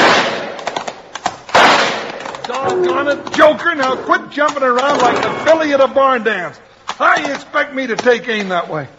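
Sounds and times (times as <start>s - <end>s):
rifle shots fired in the moonlight: 0.0s - 2.4s
speech: 2.9s - 8.9s.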